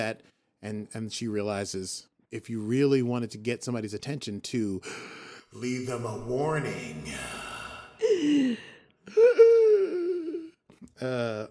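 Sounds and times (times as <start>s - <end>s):
speech: 0.0s - 9.7s, 10.9s - 11.4s
person gasping after inhaling dust: 4.8s - 5.5s, 7.0s - 10.6s.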